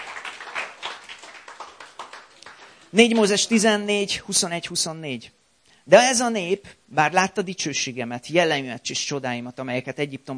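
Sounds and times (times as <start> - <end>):
audience applause: 0.0 - 3.4
speech: 2.9 - 10.3.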